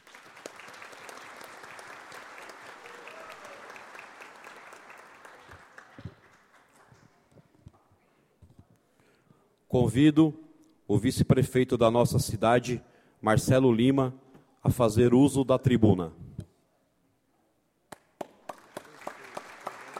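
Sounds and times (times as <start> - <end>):
round of applause: 0.0 - 7.6, 17.9 - 19.9
speech: 9.8 - 16.2.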